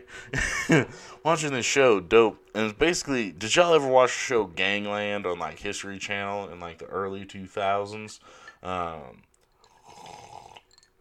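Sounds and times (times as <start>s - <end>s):
speech: 0.1s - 9.3s
person drinking water: 9.2s - 10.9s.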